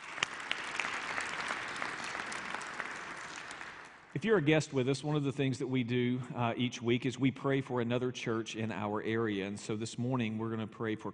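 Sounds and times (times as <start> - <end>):
audience applause in a church during a service: 0.0 - 4.1
speech: 4.2 - 11.1.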